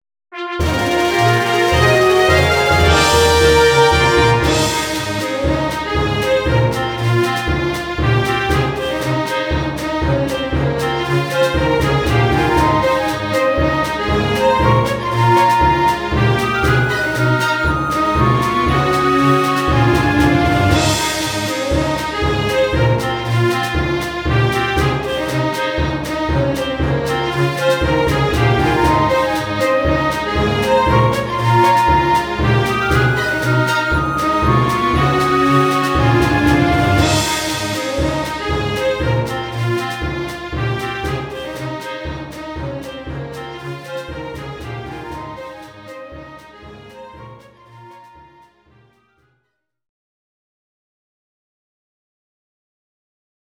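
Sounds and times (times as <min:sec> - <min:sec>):
gospel music: 0:00.6 - 0:42.6.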